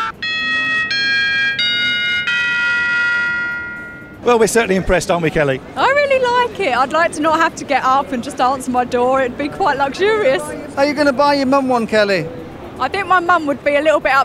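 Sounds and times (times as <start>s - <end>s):
smart doorbell playing electronic chime tunes: 0.2s - 4.2s
speech: 4.3s - 14.2s.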